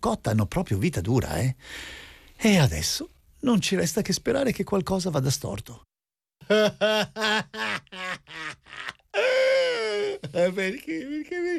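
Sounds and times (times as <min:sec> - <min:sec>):
speech: 0:00.0 - 0:11.5
person sobbing: 0:06.5 - 0:11.5
person wailing: 0:08.9 - 0:11.5.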